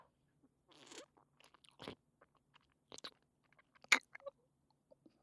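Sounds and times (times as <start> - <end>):
ASMR ear licking in right ear: 3.8 - 4.3.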